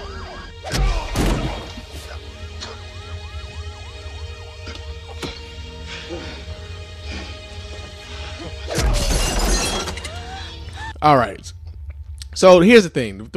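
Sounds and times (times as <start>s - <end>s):
wavering siren wailing: 0.0s - 11.0s
heavy punches landing in a fight: 0.7s - 1.8s
speech: 11.0s - 11.6s, 12.4s - 13.3s.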